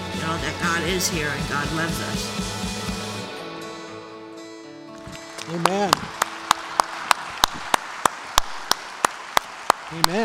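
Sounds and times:
speech: 0.3s - 2.6s, 5.5s - 6.0s
audience applause: 5.0s - 10.2s.

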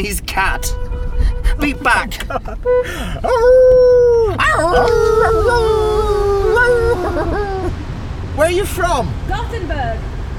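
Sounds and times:
speech: 0.0s - 1.0s, 1.6s - 7.6s, 8.4s - 10.1s
dog howling: 3.2s - 7.7s.

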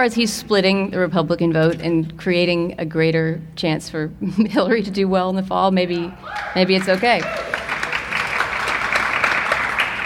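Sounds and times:
speech: 0.0s - 7.6s
light applause from an audience: 6.3s - 10.0s.

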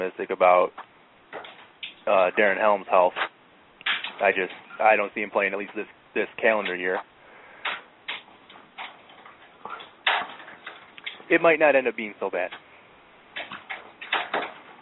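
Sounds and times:
speech: 0.0s - 0.9s, 2.1s - 3.3s, 4.2s - 7.1s, 11.3s - 12.6s
rain hitting a window air conditioner: 1.2s - 3.1s, 3.8s - 7.0s, 7.6s - 12.6s, 13.3s - 14.7s.

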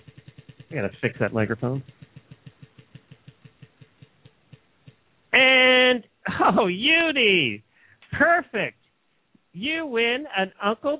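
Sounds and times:
prize wheel spinning with ticking clicks: 0.0s - 5.9s
speech: 0.7s - 2.0s, 6.6s - 7.6s, 8.2s - 8.8s, 9.6s - 10.9s.

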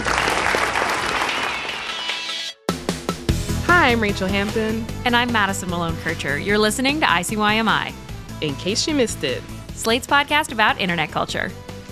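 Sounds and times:
audience applause: 0.0s - 2.2s
speech: 3.9s - 11.6s.

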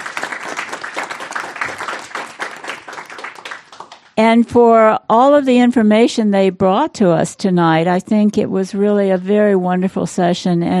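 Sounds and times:
audience applause: 0.0s - 4.1s
speech: 4.2s - 10.7s.

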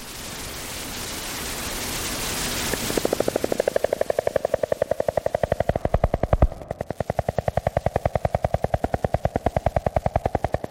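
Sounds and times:
hissing underwater noise: 0.0s - 10.6s
Columbia spotted frogs calling underwater: 3.0s - 10.6s.

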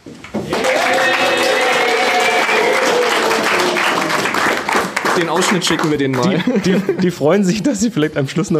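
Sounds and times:
audience applause and cheering: 0.4s - 6.9s
speech: 5.2s - 8.5s
laughter: 5.3s - 7.4s.

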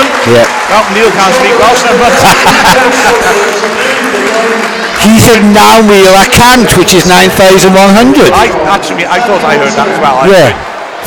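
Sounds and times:
stadium crowd applause: 0.0s - 11.0s
speech: 0.3s - 11.0s.

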